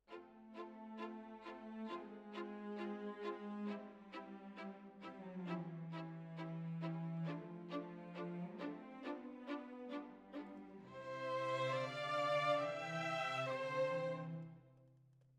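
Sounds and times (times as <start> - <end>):
violins: 0.0 - 14.6.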